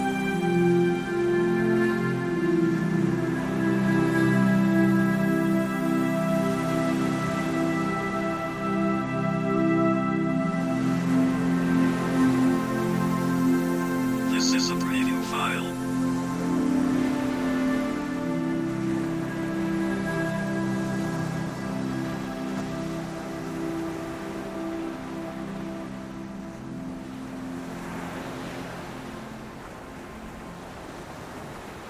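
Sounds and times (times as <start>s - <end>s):
music: 0.0s - 31.3s
sea waves: 0.0s - 31.8s.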